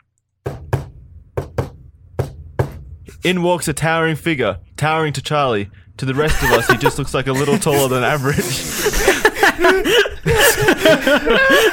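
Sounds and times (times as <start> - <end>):
secret knock on a door: 0.4 - 2.9
speech: 3.2 - 11.7
laughter: 6.1 - 11.7.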